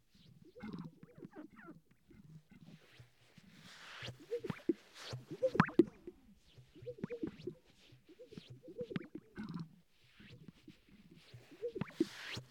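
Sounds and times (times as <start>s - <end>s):
sage-grouse display popping and bubbling: 0.6s - 1.4s, 4.3s - 6.2s, 6.8s - 9.7s, 11.4s - 12.2s.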